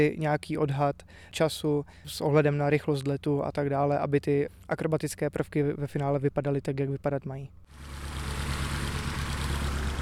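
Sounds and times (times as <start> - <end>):
speech: 0.0 - 8.1
tow plane piston aircraft engine idling: 7.7 - 9.9.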